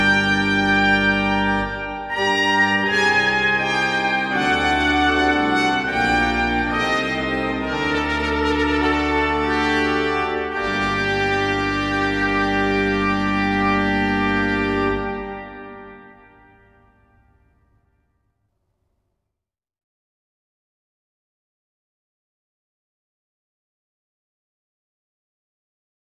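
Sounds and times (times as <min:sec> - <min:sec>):
minuet on organ: 0:00.0 - 0:17.4.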